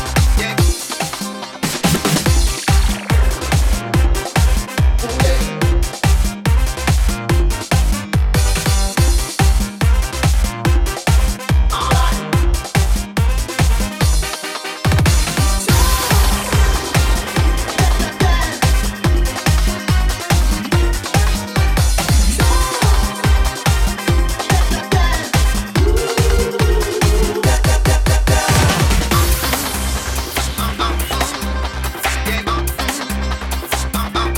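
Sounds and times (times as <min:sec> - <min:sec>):
musical accompaniment: 0:00.0 - 0:34.3.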